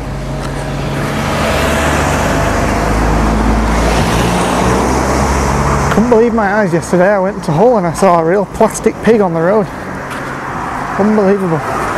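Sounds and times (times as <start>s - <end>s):
small car driving past: 0.1s - 6.0s
speech: 6.0s - 9.8s, 11.0s - 11.8s.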